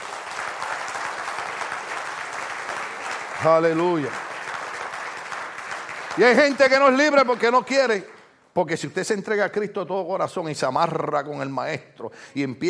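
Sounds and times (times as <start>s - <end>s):
audience applause: 0.0s - 8.2s
speech: 3.4s - 4.2s, 6.2s - 12.6s.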